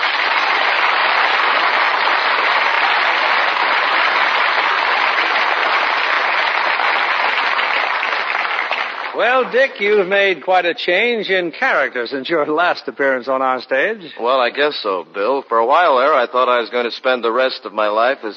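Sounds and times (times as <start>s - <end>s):
audience applauding: 0.0s - 10.1s
speech: 9.2s - 18.3s.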